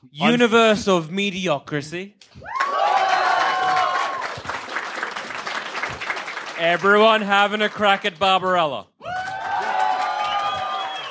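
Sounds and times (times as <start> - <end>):
speech: 0.0 - 2.6, 6.6 - 8.9
round of applause: 2.4 - 8.4, 9.0 - 11.0.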